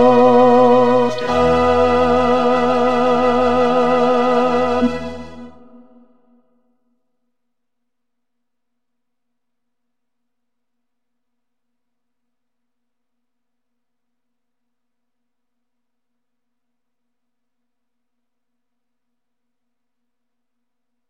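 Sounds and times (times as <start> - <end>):
tenor singing: 0.0 - 6.0.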